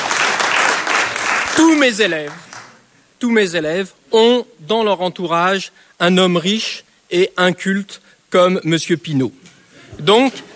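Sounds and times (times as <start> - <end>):
students in a classroom applauding their teacher: 0.0 - 2.8
speech: 1.6 - 2.5, 3.2 - 10.5.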